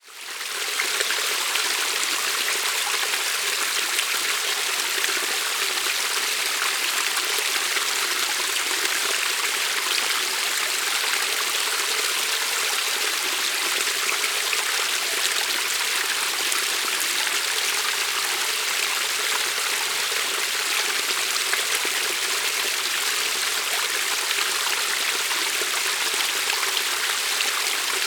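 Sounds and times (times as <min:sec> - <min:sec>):
small narrow shallow waterfall in Buderim forest Queensland Australia: 0:00.0 - 0:28.0.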